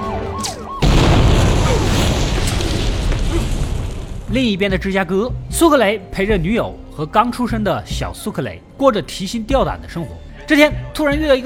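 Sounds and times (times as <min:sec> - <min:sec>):
bomb explosion: 0:00.8 - 0:04.4
speech: 0:04.3 - 0:11.4.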